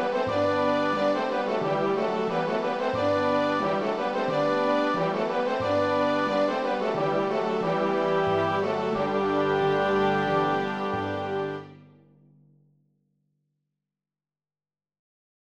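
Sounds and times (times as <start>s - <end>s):
fanfare: 0.0s - 11.7s.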